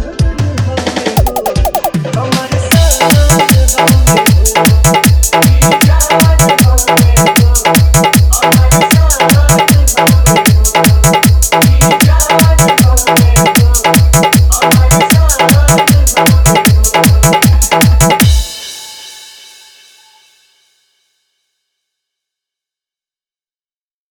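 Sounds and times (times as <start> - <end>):
patriotic Desh Bhakti dholak bass mix: 1.2 - 19.1.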